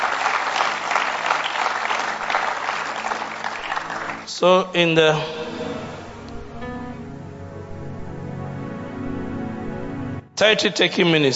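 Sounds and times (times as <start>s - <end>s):
audience applause: 0.0s - 4.3s
speech: 4.4s - 5.4s, 10.4s - 11.3s.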